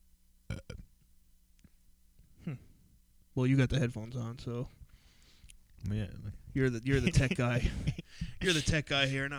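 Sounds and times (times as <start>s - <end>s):
person burping: 0.5s - 0.9s
speech: 2.5s - 2.7s, 3.4s - 4.8s, 5.8s - 9.3s.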